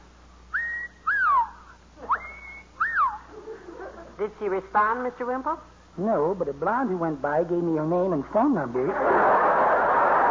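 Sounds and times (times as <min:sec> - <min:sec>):
person whistling a warbler-like birdcall: 0:00.5 - 0:03.2
laughter: 0:03.2 - 0:04.2, 0:08.8 - 0:10.2
speech: 0:04.2 - 0:09.4.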